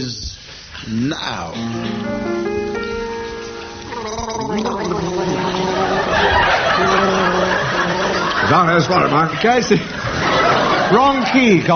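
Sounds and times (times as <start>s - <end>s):
speech: 0.0s - 2.3s, 8.5s - 10.0s, 10.9s - 11.7s
two men gargling a song: 3.8s - 9.3s
studio audience chuckles and laughter: 3.9s - 11.7s.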